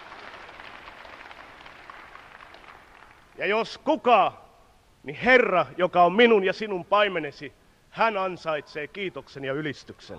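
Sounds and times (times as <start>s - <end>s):
crowd clapping: 0.0s - 3.4s
speech: 3.4s - 4.4s, 5.0s - 10.1s.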